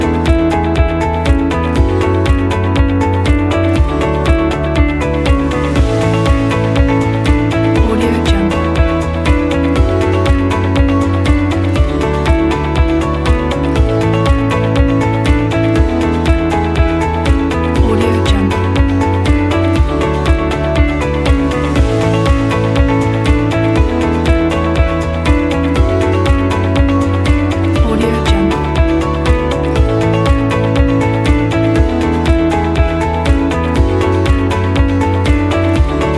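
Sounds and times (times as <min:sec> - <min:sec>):
corporate music: 0:00.0 - 0:36.1.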